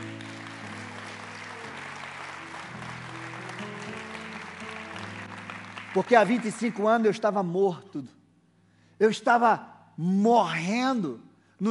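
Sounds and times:
audience applauding: 0:00.0 - 0:07.4
speech: 0:06.0 - 0:08.2, 0:09.0 - 0:11.7.

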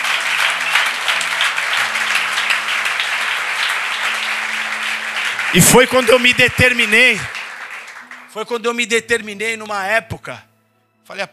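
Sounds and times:
audience applauding: 0:00.0 - 0:09.3
speech: 0:05.5 - 0:07.4, 0:08.4 - 0:10.5, 0:11.1 - 0:11.3.

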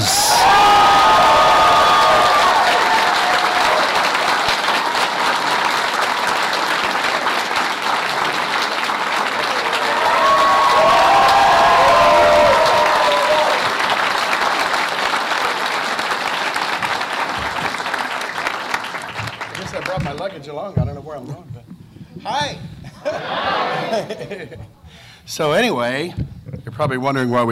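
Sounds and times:
cheers and whoops: 0:00.0 - 0:05.2, 0:09.4 - 0:13.8
audience applause: 0:00.0 - 0:20.4
laughter: 0:22.8 - 0:24.9
speech: 0:25.4 - 0:26.2, 0:26.8 - 0:27.4.

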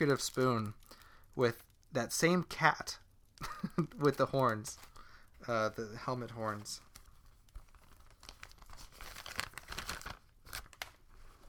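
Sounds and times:
speech: 0:00.0 - 0:06.9
empty plastic bag crinkling: 0:00.0 - 0:11.4.

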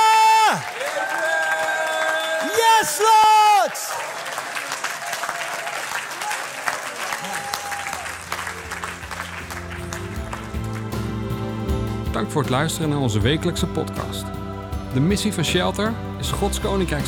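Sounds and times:
large crowd applauding: 0:00.0 - 0:13.4
speech: 0:02.8 - 0:04.1, 0:12.2 - 0:17.0
sustained music: 0:07.9 - 0:17.0.

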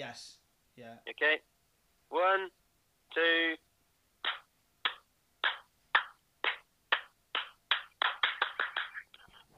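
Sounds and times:
speech: 0:00.1 - 0:03.6
hand clap for recording sync: 0:04.2 - 0:09.4.

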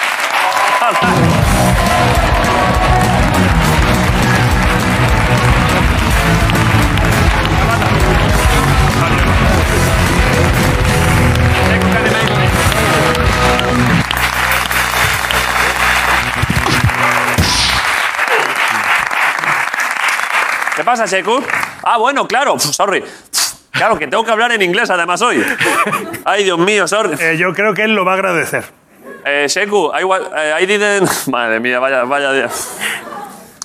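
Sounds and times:
studio audience applause and cheering: 0:00.0 - 0:21.8
speech: 0:00.8 - 0:02.1, 0:20.8 - 0:33.3
laughter: 0:00.8 - 0:19.7, 0:25.4 - 0:26.3, 0:32.1 - 0:33.6
tonal musical backing: 0:01.0 - 0:18.0.

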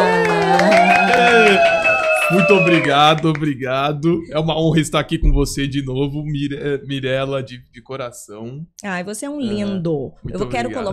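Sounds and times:
voices cheering and whooping: 0:00.0 - 0:03.4
crowd applauding: 0:00.0 - 0:03.8
speech: 0:02.3 - 0:10.9.

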